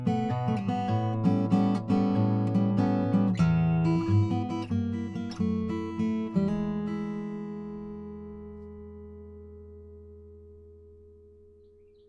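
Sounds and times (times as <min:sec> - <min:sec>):
Froggy Bottom H12 Brazili guitars: 0:00.0 - 0:12.0.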